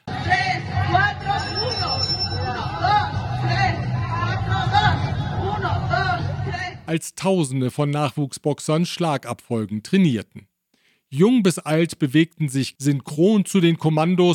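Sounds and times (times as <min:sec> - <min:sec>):
dense crowd hubbub on Mexico City's Zócalo square: 0:00.0 - 0:06.6
speech: 0:06.9 - 0:10.5, 0:11.1 - 0:14.3.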